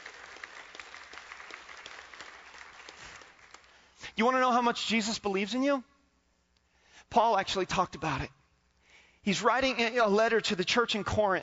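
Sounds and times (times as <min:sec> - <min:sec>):
audience applause: 0:00.0 - 0:03.8
speech: 0:04.2 - 0:05.9, 0:07.1 - 0:08.4, 0:09.2 - 0:11.4.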